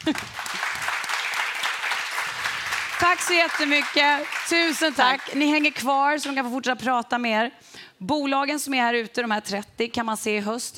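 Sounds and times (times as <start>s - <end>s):
speech: 0.0s - 0.6s, 3.0s - 10.7s
audience applause: 0.0s - 5.8s.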